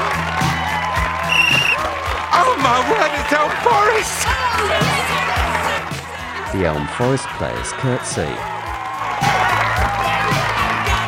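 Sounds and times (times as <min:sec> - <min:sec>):
football crowd cheering wildly after a win: 0:00.0 - 0:11.0
speech: 0:02.7 - 0:05.4, 0:06.5 - 0:08.6.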